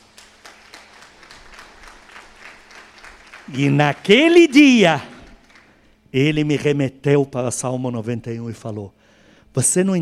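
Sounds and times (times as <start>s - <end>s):
audience applauding: 0.0s - 5.9s
speech: 3.5s - 5.1s, 6.1s - 9.9s.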